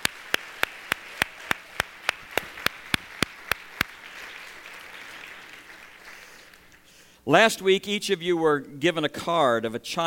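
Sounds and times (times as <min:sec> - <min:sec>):
audience applause: 0:00.0 - 0:06.9
speech: 0:07.3 - 0:10.0.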